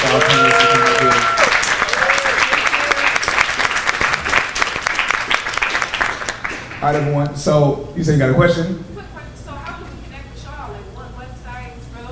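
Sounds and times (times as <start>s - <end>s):
audience applause: 0.0s - 7.2s
speech: 0.1s - 1.0s, 6.8s - 8.9s.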